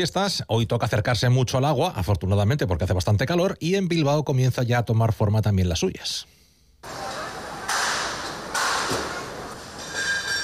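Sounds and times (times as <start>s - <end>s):
speech: 0.0s - 7.1s
festival marquee tents being assembled: 6.8s - 10.4s.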